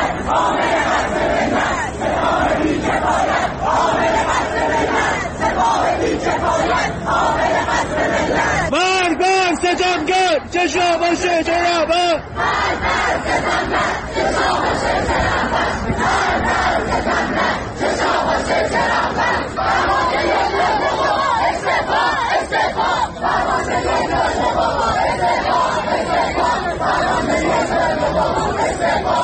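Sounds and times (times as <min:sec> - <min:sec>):
student protesters chanting slogans: 0:00.0 - 0:29.2.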